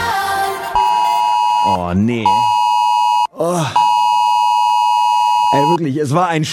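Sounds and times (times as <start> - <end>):
loud mobile phone: 0.8 - 5.8
speech: 1.9 - 2.5, 3.4 - 3.8, 5.5 - 6.5.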